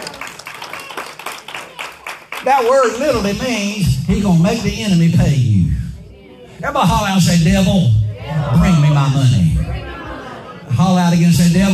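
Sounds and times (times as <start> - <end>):
audience clapping hands in a steady rhythm: 0.0 - 3.3
speech: 2.4 - 5.6, 6.6 - 9.5, 10.8 - 11.7
laughter: 8.2 - 10.8.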